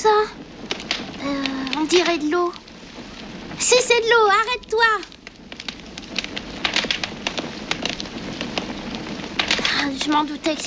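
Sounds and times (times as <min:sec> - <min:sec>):
crackling fire in a fireplace: 0:00.0 - 0:10.6
speech: 0:01.3 - 0:02.6, 0:03.6 - 0:05.2, 0:09.9 - 0:10.6.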